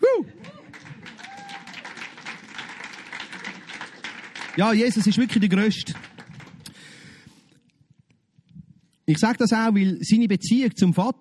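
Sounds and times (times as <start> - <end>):
audience applause: 0.0 - 7.0
speech: 4.6 - 6.1, 9.1 - 11.1.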